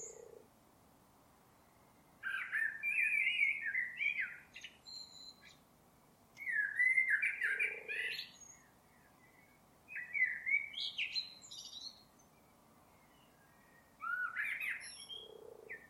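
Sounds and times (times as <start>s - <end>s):
bird calls with warbled whistled notes and buzzy upsweeps: 0.0s - 0.4s, 1.6s - 5.6s, 6.4s - 15.8s.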